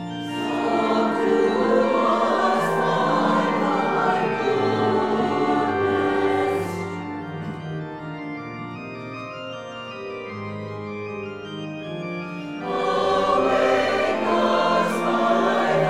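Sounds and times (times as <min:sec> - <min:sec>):
chancel choir performance: 0:00.2 - 0:07.7, 0:12.5 - 0:15.8.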